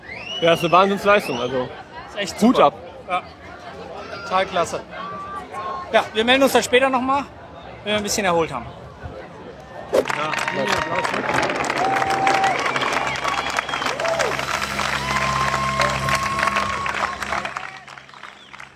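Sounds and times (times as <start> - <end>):
speech: 0.4 - 3.5, 4.3 - 5.0, 5.9 - 8.8, 9.9 - 11.7
spectators cheering at triathlon race in Hamburg: 10.0 - 18.7.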